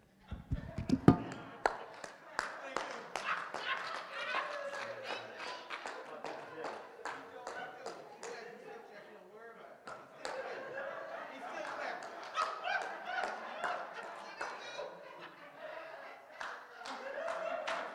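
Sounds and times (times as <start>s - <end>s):
laughter: 0.2s - 17.9s
clapping: 0.6s - 8.4s, 9.8s - 10.6s, 11.5s - 14.8s, 16.4s - 17.9s.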